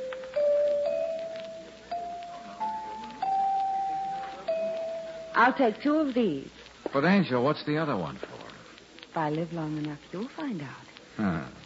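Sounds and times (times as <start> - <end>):
chimes ringing: 0.0 - 5.5
speech: 5.4 - 8.4, 9.2 - 11.5.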